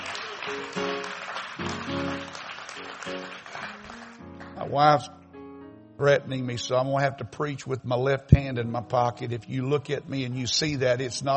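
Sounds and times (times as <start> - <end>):
audience clapping: 0.0 - 4.7
speech: 4.7 - 5.2, 6.0 - 11.3.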